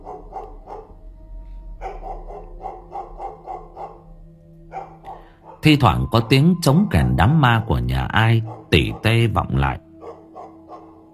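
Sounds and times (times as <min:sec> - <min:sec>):
distant dog barking at night: 0:00.0 - 0:01.0, 0:01.7 - 0:05.8, 0:08.2 - 0:11.1
speech: 0:05.6 - 0:09.9.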